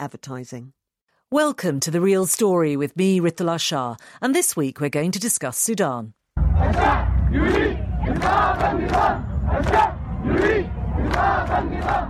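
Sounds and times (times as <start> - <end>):
speech: 0.0 - 12.0
men and women protesters chanting in the streets of Sudan: 6.4 - 12.0.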